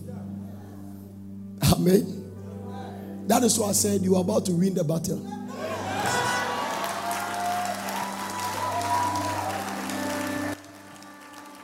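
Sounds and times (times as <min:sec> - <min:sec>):
speech: 0:01.8 - 0:02.2, 0:03.3 - 0:05.4
audience clapping: 0:05.7 - 0:11.6.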